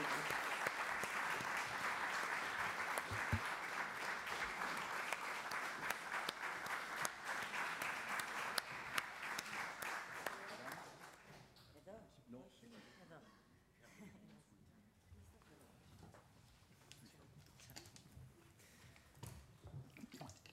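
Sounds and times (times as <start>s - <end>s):
audience applause welcoming film team: 0.0s - 11.2s.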